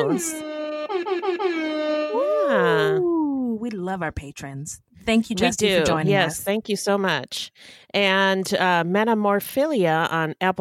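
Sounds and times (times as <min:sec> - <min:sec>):
speech: 0:00.0 - 0:01.7, 0:02.5 - 0:10.5
hip-hop air horns: 0:00.0 - 0:02.8.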